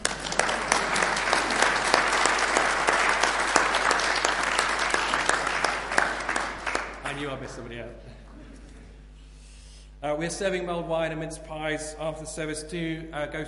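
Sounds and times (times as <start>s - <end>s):
audience applauding the organist: 0.0s - 7.6s
speech: 10.0s - 13.4s.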